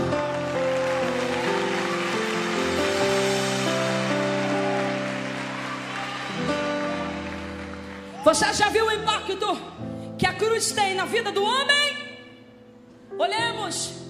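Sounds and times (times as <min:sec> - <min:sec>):
audience applauding: 0:00.0 - 0:08.8
speech: 0:08.3 - 0:12.0, 0:13.2 - 0:14.0.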